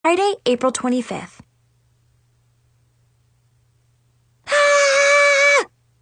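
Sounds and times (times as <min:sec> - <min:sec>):
speech: 0:00.1 - 0:01.5
person screaming: 0:04.5 - 0:05.7.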